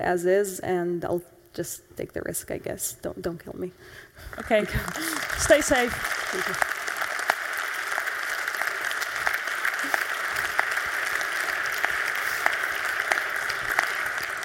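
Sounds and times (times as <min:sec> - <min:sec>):
speech: 0:00.0 - 0:06.7
audience applause: 0:04.3 - 0:14.4.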